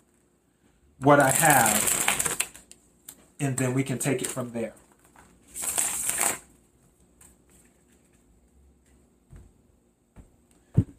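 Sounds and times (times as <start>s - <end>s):
speech: 1.0s - 1.9s, 3.4s - 4.8s
cards drawn from a deck rustling: 1.2s - 2.8s, 3.6s - 6.5s.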